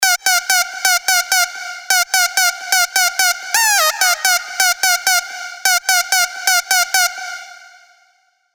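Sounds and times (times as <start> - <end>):
dirty Dutch house synth leads: 0.9 - 7.1.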